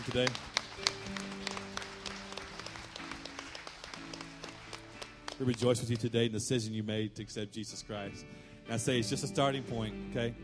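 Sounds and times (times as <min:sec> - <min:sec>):
speech: 0:00.0 - 0:00.9, 0:05.4 - 0:10.4
audience clapping: 0:00.0 - 0:06.3.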